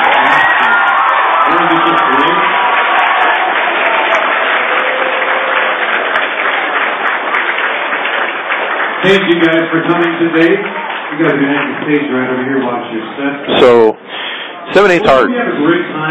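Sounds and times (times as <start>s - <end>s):
crowd cheering and whooping: 0.0s - 6.8s
crowd applause: 0.0s - 12.9s
speech: 9.1s - 14.0s, 14.7s - 16.1s.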